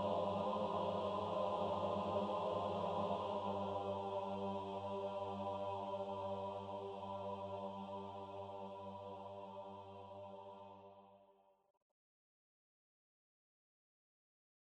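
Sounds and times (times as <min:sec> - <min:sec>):
monks: 0:00.0 - 0:10.9.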